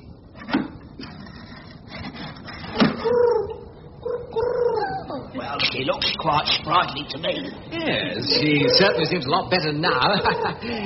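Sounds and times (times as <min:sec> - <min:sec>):
pigeon cooing: 0:02.8 - 0:05.4
speech: 0:05.8 - 0:10.8
laughter: 0:09.8 - 0:10.8.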